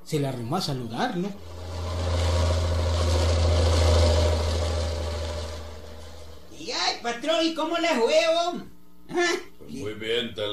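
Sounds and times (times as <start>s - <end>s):
speech: 0.1s - 1.7s, 6.7s - 10.5s
jeep engine arriving: 1.4s - 6.6s.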